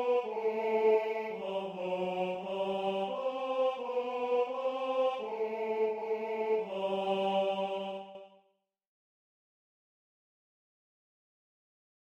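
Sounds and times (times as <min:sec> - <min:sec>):
tenor singing: 0:00.0 - 0:08.2.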